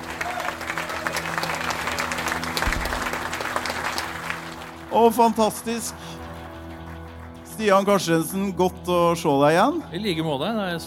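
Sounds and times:
audience applause: 0.0s - 7.4s
speech: 4.9s - 6.2s, 7.6s - 10.8s.

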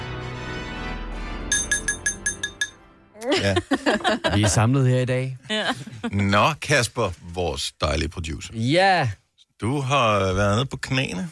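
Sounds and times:
tapping a glass for a toast: 1.5s - 2.8s
laughter: 3.2s - 4.7s, 5.4s - 6.3s
speech: 3.2s - 11.3s.

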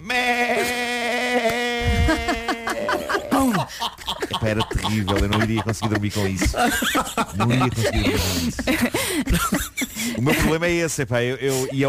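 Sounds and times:
person imitating a ram bleating: 0.0s - 3.1s
laughter: 1.5s - 10.7s
speech: 3.8s - 11.8s.

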